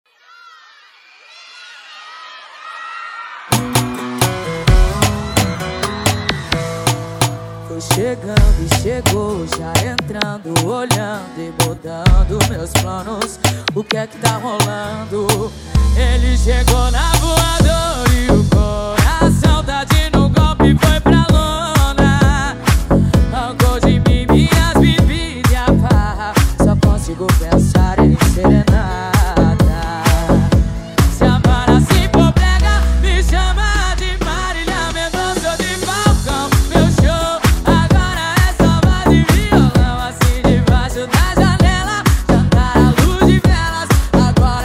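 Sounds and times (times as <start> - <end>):
sertanejo music: 3.5 - 44.6.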